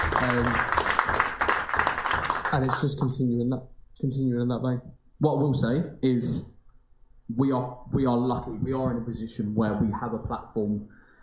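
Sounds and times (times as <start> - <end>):
audience applause: 0.0 - 2.9
speech: 0.3 - 0.7, 2.5 - 6.6, 7.3 - 11.0.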